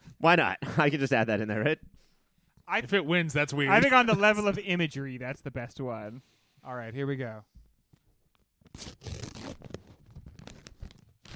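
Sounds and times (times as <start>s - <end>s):
speech: 0.2s - 2.0s, 2.7s - 7.5s, 8.8s - 9.8s
paper envelope tearing open: 8.6s - 11.3s.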